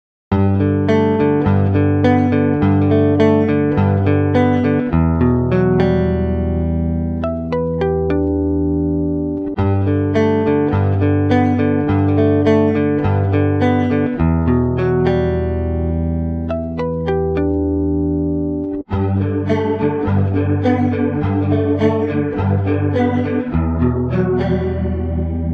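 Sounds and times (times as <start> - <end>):
electric guitar: 0.3 - 25.5.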